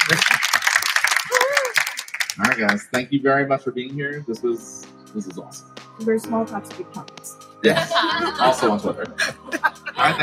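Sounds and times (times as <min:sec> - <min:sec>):
audience round of applause: 0:00.0 - 0:03.0
speech: 0:02.4 - 0:10.2
laughter: 0:07.6 - 0:10.2.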